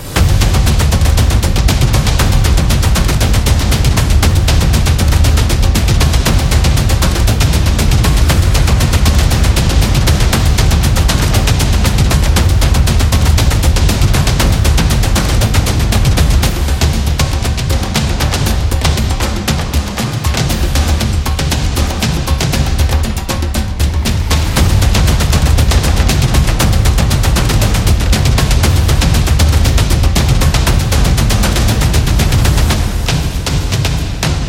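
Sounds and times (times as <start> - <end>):
tribal drum cinematic percussion: 0.0 - 34.4.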